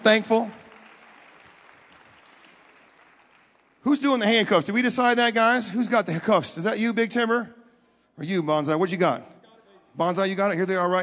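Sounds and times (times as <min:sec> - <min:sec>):
speech: 0:00.0 - 0:00.6, 0:03.8 - 0:07.6, 0:08.2 - 0:09.4, 0:10.0 - 0:11.0
audience clapping hands: 0:00.0 - 0:04.6.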